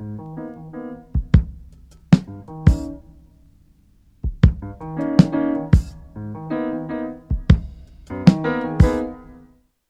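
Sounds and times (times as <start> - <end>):
piano: 0.0 - 9.7
hip hop breakbeat drums: 1.2 - 6.2, 7.3 - 9.4.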